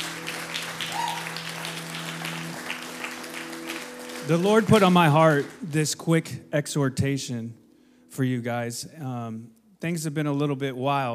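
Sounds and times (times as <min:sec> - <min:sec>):
crowd applauding: 0:00.0 - 0:06.1
speech: 0:04.3 - 0:07.6, 0:08.2 - 0:11.1.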